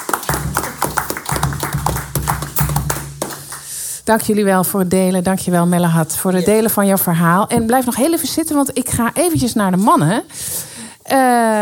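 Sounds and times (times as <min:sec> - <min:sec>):
applause: 0:00.0 - 0:03.8
speech: 0:04.1 - 0:11.6.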